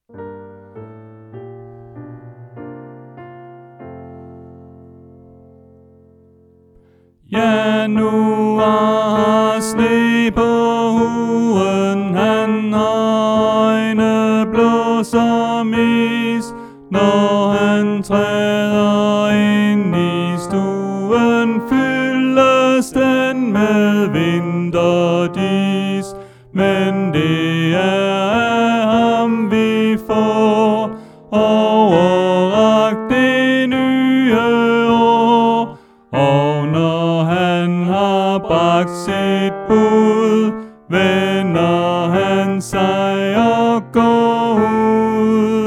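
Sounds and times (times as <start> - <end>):
tenor singing: 7.2 - 45.6.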